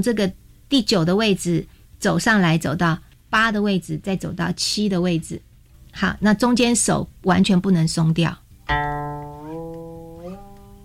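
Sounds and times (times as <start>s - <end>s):
speech: 0.0s - 9.1s
guqin string note sliding upward in pitch: 8.7s - 10.8s.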